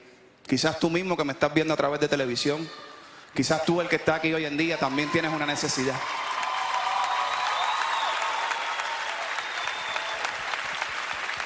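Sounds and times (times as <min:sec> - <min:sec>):
speech: 0:00.5 - 0:06.3
audience applauding: 0:04.9 - 0:11.4.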